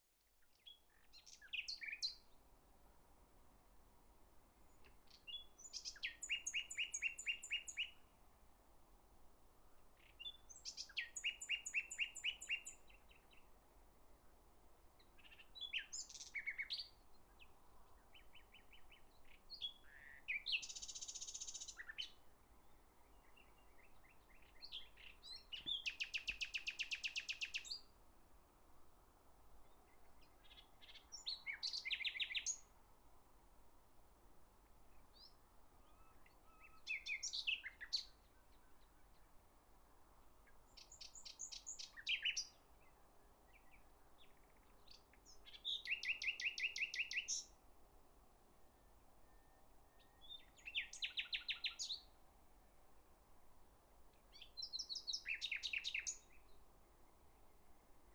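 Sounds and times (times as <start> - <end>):
nightingale singing in spring: 0.2 - 2.4, 4.7 - 8.1, 10.0 - 13.5, 15.0 - 27.9, 29.6 - 32.7, 34.9 - 39.2, 40.5 - 47.6, 48.7 - 52.2, 54.1 - 58.1.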